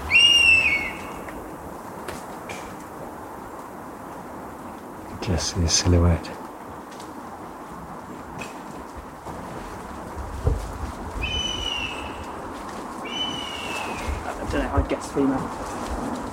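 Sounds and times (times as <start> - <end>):
honey buzzard high thin whistling calls: 0.0 - 1.3, 11.2 - 12.4, 13.0 - 14.3
steady outdoor hiss: 0.0 - 16.3
speech: 5.2 - 6.4, 15.2 - 15.8.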